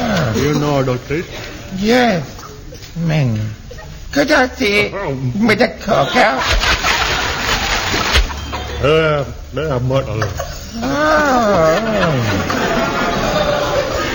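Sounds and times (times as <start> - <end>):
speech: 0.4 - 2.4, 3.0 - 6.7, 8.8 - 12.5
laughter: 5.6 - 9.3, 10.1 - 14.1
water sloshing played from a record: 6.4 - 8.5.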